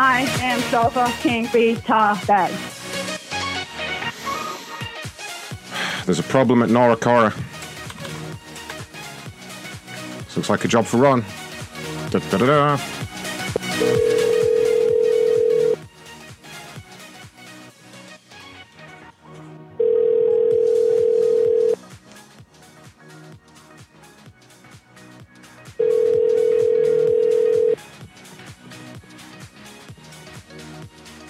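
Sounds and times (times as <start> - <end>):
music: 0.0 - 31.2
speech: 0.2 - 2.8, 6.1 - 7.5, 10.4 - 11.4, 12.1 - 12.9, 13.8 - 14.2
telephone ringback tone: 13.6 - 15.8, 19.8 - 21.8, 25.8 - 27.8.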